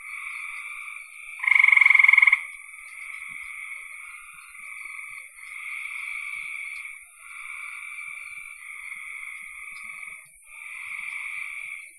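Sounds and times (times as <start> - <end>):
frog chorus: 0.0 - 11.9
frog trill: 1.4 - 2.5.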